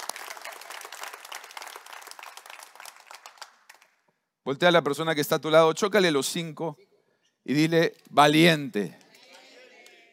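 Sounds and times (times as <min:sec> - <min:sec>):
applause: 0:00.0 - 0:04.1
speech: 0:04.5 - 0:06.8, 0:07.4 - 0:09.0.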